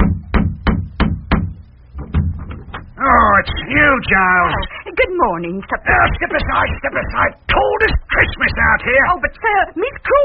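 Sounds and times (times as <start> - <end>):
door knocker banging on a door: 0.0 - 2.9
speech: 3.7 - 10.2.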